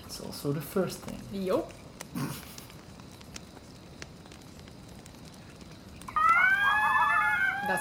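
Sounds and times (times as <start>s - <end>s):
speech: 0.2s - 2.5s
coyote scream: 6.1s - 7.7s.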